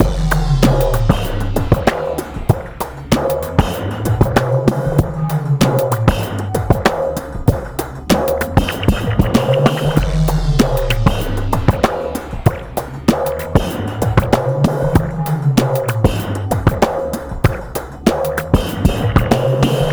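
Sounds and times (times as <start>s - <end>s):
breakbeat: 0.0s - 19.9s.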